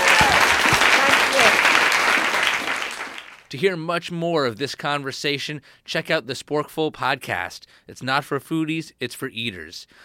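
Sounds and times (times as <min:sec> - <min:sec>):
audience applause: 0:00.0 - 0:03.5
speech: 0:03.5 - 0:10.0.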